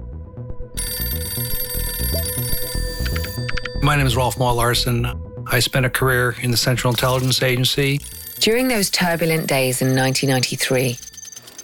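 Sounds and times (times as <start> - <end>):
telephone ringing: 0.8 - 4.8, 6.5 - 11.6
low rhythmic musical backing: 1.1 - 10.6
speech: 3.9 - 11.1.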